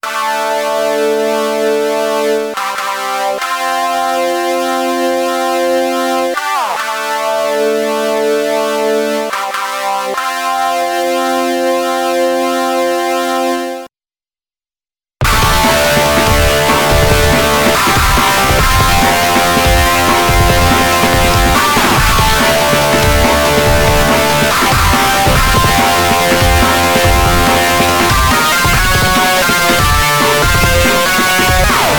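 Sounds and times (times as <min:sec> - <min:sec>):
guitar: 0:00.0 - 0:13.7, 0:15.2 - 0:31.9.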